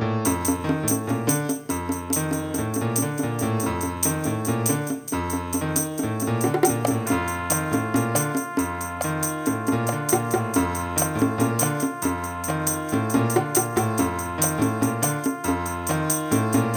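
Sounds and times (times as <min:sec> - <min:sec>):
rumba music: 0:00.2 - 0:16.7.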